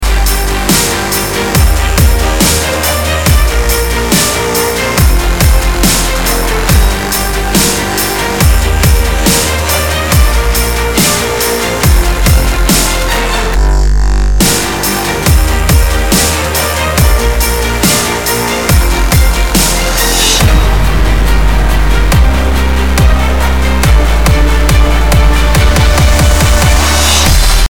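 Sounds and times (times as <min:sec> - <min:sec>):
dubstep remix: 0:00.0 - 0:27.7.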